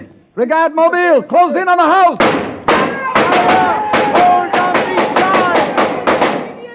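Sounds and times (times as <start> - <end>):
speech: 0.4 - 2.4
burst of automatic gunfire: 2.2 - 6.6
person shouting: 2.7 - 5.8.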